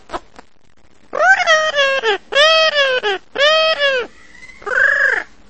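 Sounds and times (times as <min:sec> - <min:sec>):
parrot screeching in various ways: 0:01.2 - 0:05.4.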